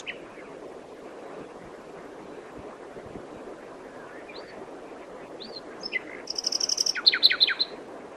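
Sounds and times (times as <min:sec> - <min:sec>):
common nightingale Luscinia megarhynchos singing: 0:00.0 - 0:00.5, 0:05.4 - 0:07.8.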